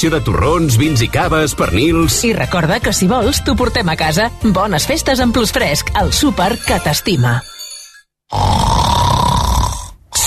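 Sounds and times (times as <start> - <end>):
speech: 0.0 - 7.5, 8.3 - 8.6
person snoring: 8.3 - 10.2.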